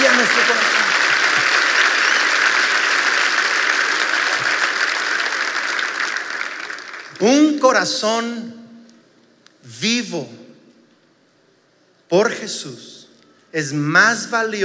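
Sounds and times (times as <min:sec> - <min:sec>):
audience applause: 0:00.0 - 0:07.5
speech: 0:07.2 - 0:08.6, 0:09.7 - 0:10.4, 0:12.1 - 0:14.6.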